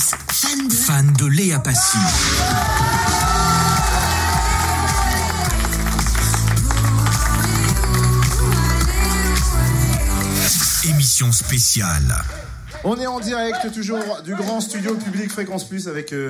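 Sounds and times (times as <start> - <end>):
speech: 0.5 - 3.2, 11.2 - 16.2
studio audience applause and whoops in a public radio studio: 1.8 - 10.9
music: 2.0 - 12.8.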